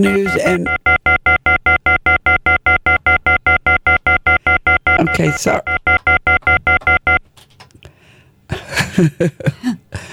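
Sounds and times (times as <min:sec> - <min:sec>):
speech: 0:00.0 - 0:00.8, 0:05.1 - 0:05.8, 0:09.0 - 0:09.6
telephone ringing from a listener calling a radio show: 0:00.0 - 0:07.3.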